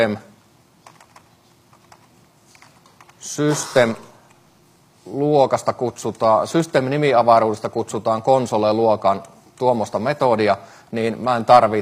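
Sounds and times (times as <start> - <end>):
speech: 0.0 - 0.3, 3.2 - 4.1, 5.0 - 11.8
typing on a computer keyboard: 0.8 - 3.2.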